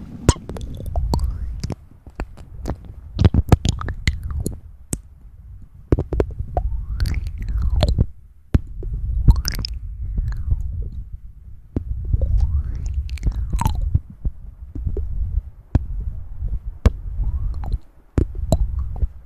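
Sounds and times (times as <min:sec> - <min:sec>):
low murky rumble: 0:00.0 - 0:19.2
wet mouth clicks and smacks: 0:00.3 - 0:05.1, 0:05.9 - 0:08.1, 0:09.2 - 0:11.0, 0:12.1 - 0:14.0, 0:16.9 - 0:19.1.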